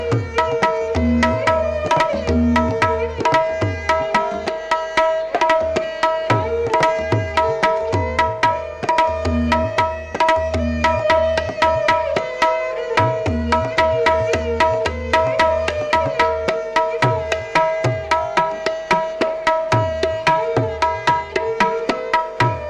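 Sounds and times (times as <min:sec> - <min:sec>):
tabla playing Jai Taal: 0:00.0 - 0:22.6.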